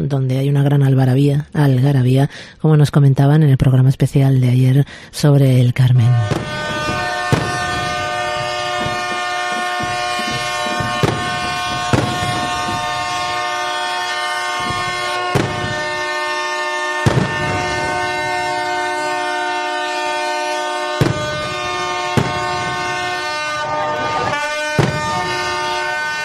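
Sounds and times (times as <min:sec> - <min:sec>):
speech: 0:00.0 - 0:06.7
ship sirens sounding in harbour procession: 0:05.9 - 0:26.2
sharp knocks and bangs: 0:06.2 - 0:13.5, 0:14.5 - 0:16.1, 0:17.0 - 0:18.3, 0:21.0 - 0:23.2, 0:24.7 - 0:25.7.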